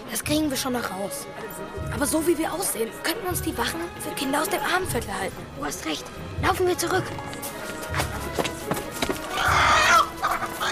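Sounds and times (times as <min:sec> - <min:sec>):
speech: 0:00.2 - 0:08.0
startled chickens clucking: 0:07.4 - 0:10.7.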